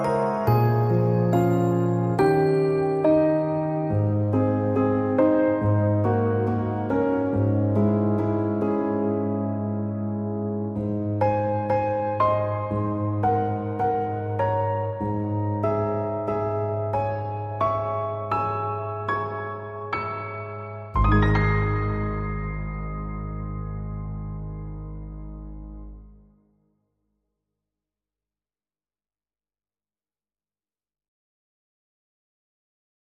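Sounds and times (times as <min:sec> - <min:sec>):
bells: 0:00.0 - 0:05.0, 0:20.0 - 0:24.7
piano: 0:00.0 - 0:26.6.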